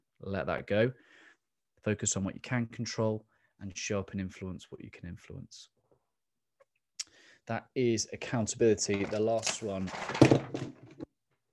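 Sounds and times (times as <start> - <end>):
speech: 0.2 - 1.2, 1.8 - 5.8, 7.4 - 10.8
camera being knocked over: 9.9 - 11.0.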